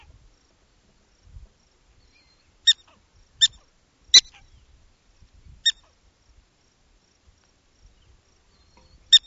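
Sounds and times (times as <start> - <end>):
prairie dog calling: 2.0 - 4.7, 5.6 - 6.0, 8.0 - 9.2.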